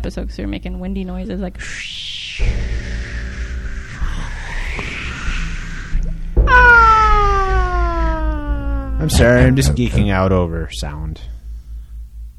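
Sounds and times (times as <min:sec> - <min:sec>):
speech: 0:00.0 - 0:03.0, 0:09.0 - 0:11.4
squeaking springs of microphone stands: 0:02.4 - 0:10.0.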